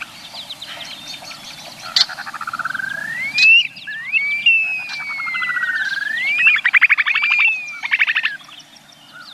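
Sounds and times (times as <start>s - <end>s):
upland sandpiper wolf whistle call: 1.9s - 8.5s.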